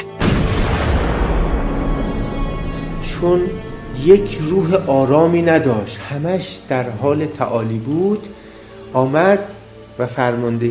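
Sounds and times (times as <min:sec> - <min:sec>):
heavy artillery cannon blast: 0:00.2 - 0:05.9
speech: 0:03.2 - 0:10.6.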